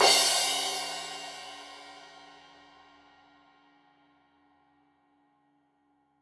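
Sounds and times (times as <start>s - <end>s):
15 inch crash cymbal edge hit: 0.0s - 2.6s.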